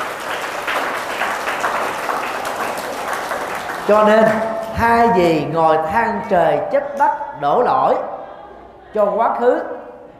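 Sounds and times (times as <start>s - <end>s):
applause: 0.0s - 4.8s
speech: 3.9s - 8.1s, 8.9s - 9.7s.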